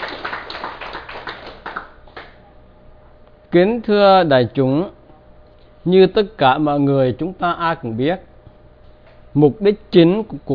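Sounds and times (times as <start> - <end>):
audience handclaps at a Buddhist dharma talk: 0.0 - 2.4
speech: 3.5 - 5.0, 5.8 - 8.3, 9.3 - 10.5.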